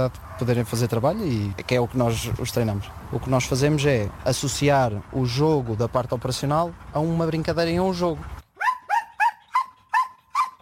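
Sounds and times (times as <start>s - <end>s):
speech: 0.0s - 8.4s
working dog barking: 8.6s - 10.5s.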